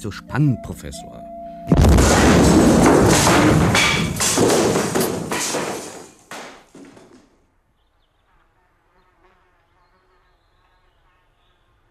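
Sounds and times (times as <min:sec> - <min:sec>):
speech: 0:00.0 - 0:02.3, 0:03.2 - 0:05.6
bomb explosion: 0:01.7 - 0:05.3.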